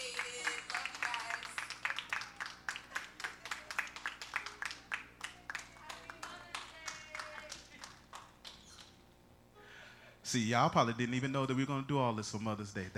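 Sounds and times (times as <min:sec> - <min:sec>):
audience clapping: 0:00.0 - 0:08.9
speech: 0:10.3 - 0:12.9.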